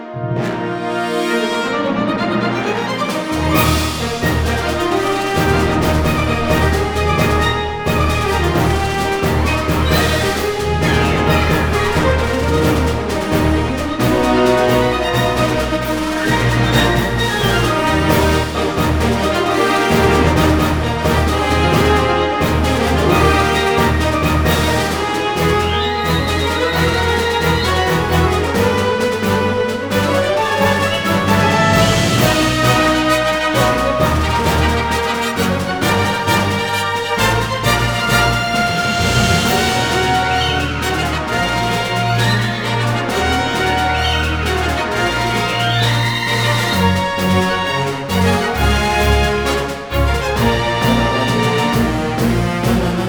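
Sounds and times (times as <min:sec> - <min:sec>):
percussion: 0:00.3 - 0:53.0.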